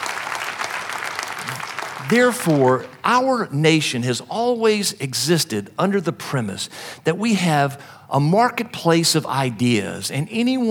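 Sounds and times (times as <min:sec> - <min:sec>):
audience applause: 0:00.0 - 0:03.0
speech: 0:01.5 - 0:10.6.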